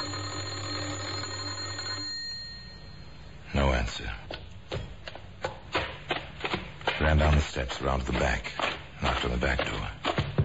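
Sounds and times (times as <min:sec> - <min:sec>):
electric doorbell buzzing: 0:00.0 - 0:03.2
faint hum: 0:00.0 - 0:10.4
speech: 0:03.8 - 0:04.9, 0:07.1 - 0:10.0.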